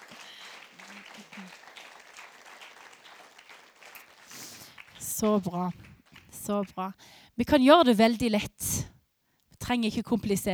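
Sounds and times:
crowd applauding: 0:00.0 - 0:06.8
speech: 0:05.2 - 0:08.7, 0:09.7 - 0:10.5.

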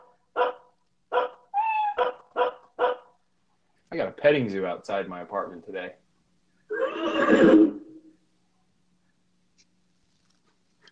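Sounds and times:
dog barking: 0:00.0 - 0:03.2
dog whining yelp: 0:01.2 - 0:03.0
speech: 0:04.0 - 0:06.0, 0:07.1 - 0:07.8.

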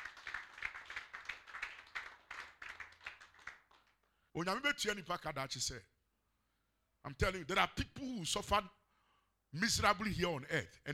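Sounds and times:
rhythmic audience clapping: 0:00.0 - 0:04.2
speech: 0:04.4 - 0:05.9, 0:07.0 - 0:08.8, 0:09.5 - 0:10.9.

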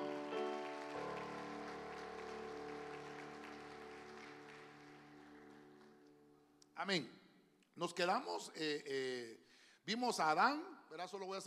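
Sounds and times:
sustained keyboard chords: 0:00.0 - 0:05.8
audience clapping: 0:00.0 - 0:06.5
speech: 0:06.8 - 0:07.2, 0:07.8 - 0:11.4.

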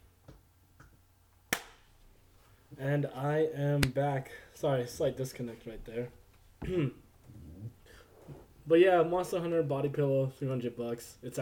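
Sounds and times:
single hand clap: 0:01.5 - 0:01.8
speech: 0:02.8 - 0:07.0, 0:08.7 - 0:11.4.

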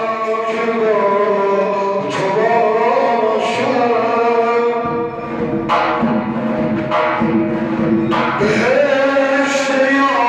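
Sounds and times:
person chanting in a zurkhaneh session: 0:00.0 - 0:05.3, 0:08.3 - 0:10.2
sharp struck accents: 0:04.8 - 0:08.9.

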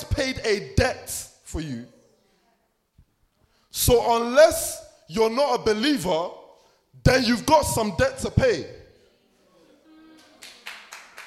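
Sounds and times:
speech: 0:00.3 - 0:02.0, 0:03.8 - 0:06.4, 0:07.0 - 0:08.8
listeners clapping during a talk about Christ: 0:10.2 - 0:11.2.

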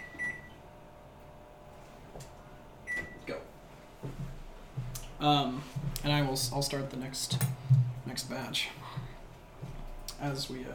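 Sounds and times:
oven timer being set, beeping: 0:00.0 - 0:00.6, 0:02.8 - 0:03.2
faint hum: 0:00.0 - 0:10.7
speech: 0:05.2 - 0:09.0, 0:10.2 - 0:10.7.

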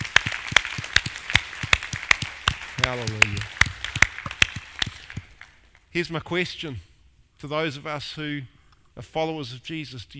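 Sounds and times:
audience clapping in unison: 0:00.0 - 0:05.9
speech: 0:02.8 - 0:03.6, 0:06.0 - 0:10.1.

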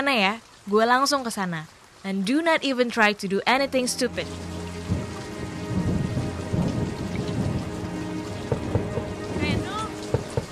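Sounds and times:
speech: 0:00.0 - 0:04.6
heavy rain: 0:00.0 - 0:10.5.

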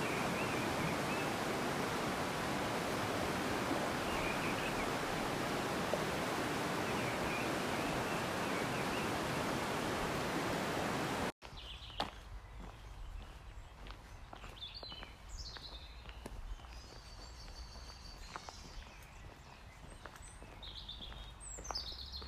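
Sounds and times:
loud steady rush like running water by Gem River: 0:00.0 - 0:11.4
birdsong along the woods by Gem River: 0:00.0 - 0:22.2.

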